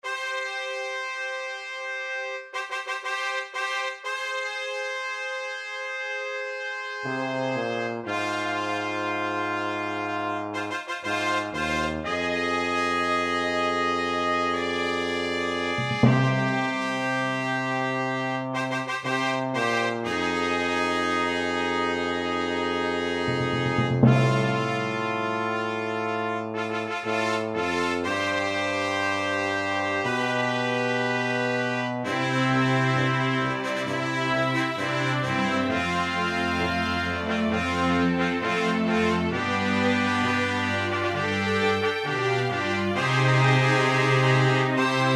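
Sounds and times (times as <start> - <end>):
fanfare: 0.0 - 45.1.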